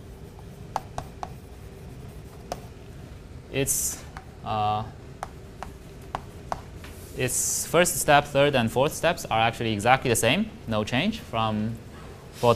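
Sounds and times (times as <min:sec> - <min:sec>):
writing on a board during a recitation on network flow: 0:00.0 - 0:02.8, 0:05.2 - 0:06.8
speech: 0:03.5 - 0:05.0, 0:07.2 - 0:11.8, 0:12.4 - 0:12.5.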